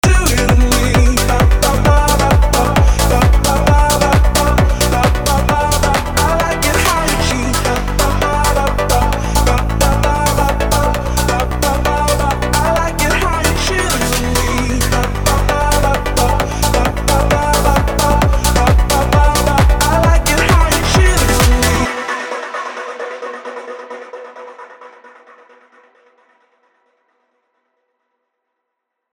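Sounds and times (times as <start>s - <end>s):
chart pop boom bap beat: 0.0s - 22.0s.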